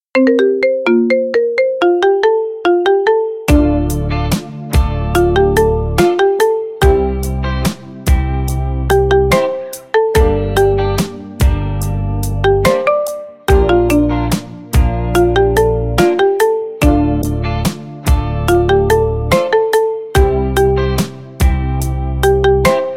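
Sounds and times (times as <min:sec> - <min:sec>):
marimba remix: 0:00.0 - 0:22.9.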